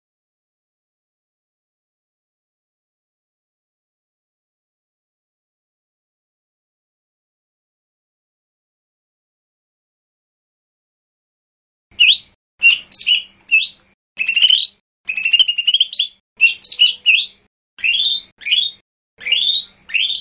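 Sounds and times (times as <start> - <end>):
Lesser green leafbird singing whistles, chirps and buzzy chatter: 12.0 - 20.1.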